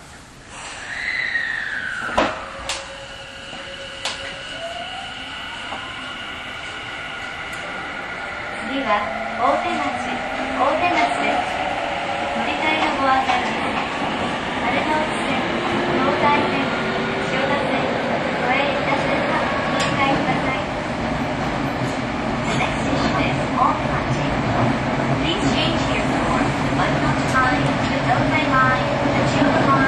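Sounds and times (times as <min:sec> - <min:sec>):
Tobu 50050 series train running between Jimbocho and Otemachi: 0:01.8 - 0:29.8.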